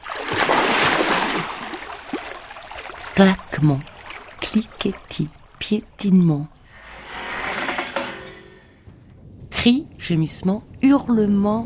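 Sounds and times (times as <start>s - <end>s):
churning, sloshing water: 0.0s - 5.6s
speech: 3.2s - 6.6s, 9.6s - 11.6s.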